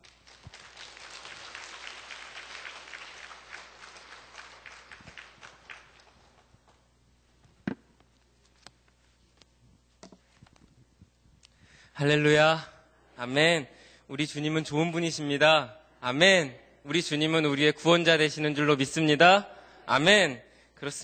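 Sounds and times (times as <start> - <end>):
audience applause: 0.0 - 6.6
speech: 12.0 - 21.0.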